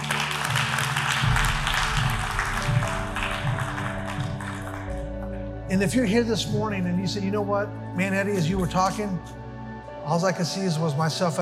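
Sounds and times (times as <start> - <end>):
audience clapping: 0.0 - 5.4
speech: 5.7 - 9.4, 10.0 - 11.3.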